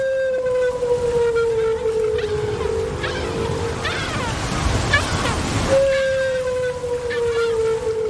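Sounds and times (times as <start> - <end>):
whale long underwater call via hydrophone: 0.0 - 8.0.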